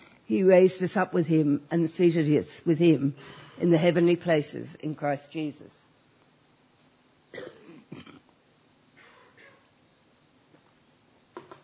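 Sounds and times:
speech: 0.3 - 5.8
faint breathing: 3.2 - 3.6
person coughing: 7.3 - 8.3.

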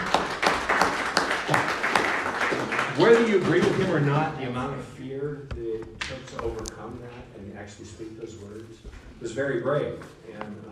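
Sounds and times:
audience applause: 0.0 - 4.3
speech: 3.0 - 10.7.

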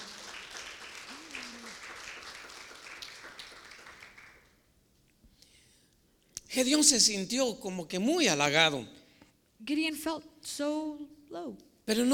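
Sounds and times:
audience applause: 0.0 - 4.6
speech: 6.5 - 9.0, 9.6 - 12.1.

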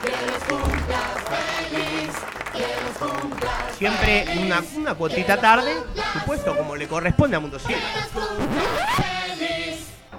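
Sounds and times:
applause for birthday guests: 0.0 - 4.9
laughter: 0.0 - 10.1
speech: 3.8 - 9.1.

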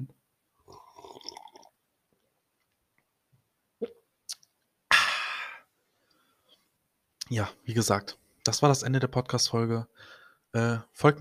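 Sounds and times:
person sipping a drink and swallowing: 0.7 - 1.7
speech: 7.3 - 11.1
breathy exhale: 10.0 - 10.4.

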